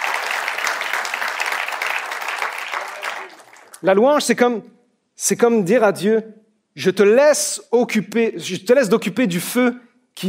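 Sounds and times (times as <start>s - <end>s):
audience applause: 0.0s - 3.8s
speech: 3.8s - 10.2s.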